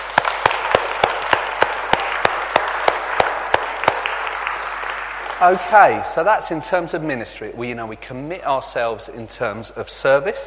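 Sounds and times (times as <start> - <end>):
audience clapping: 0.0 - 6.3
speech: 5.4 - 10.4.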